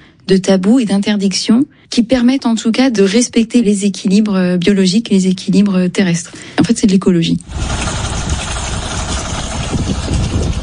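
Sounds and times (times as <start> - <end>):
speech: 0.3 - 8.3
boat engine running: 7.4 - 10.6.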